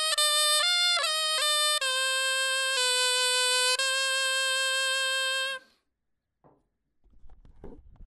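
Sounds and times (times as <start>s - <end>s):
clarinet etude: 0.0s - 5.8s.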